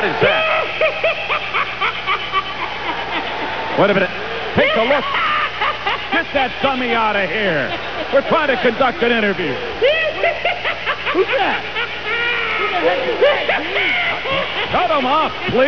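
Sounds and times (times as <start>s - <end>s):
person laughing: 0.2s - 3.7s, 4.6s - 15.5s.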